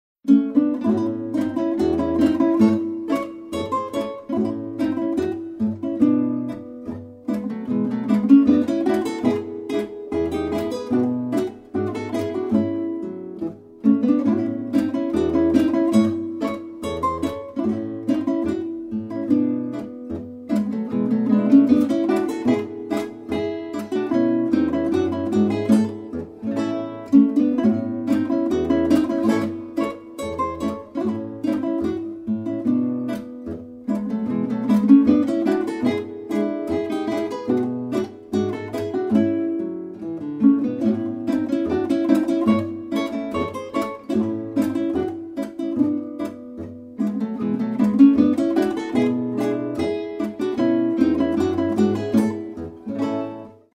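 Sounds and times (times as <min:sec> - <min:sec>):
guitar music: 0:00.2 - 0:53.7.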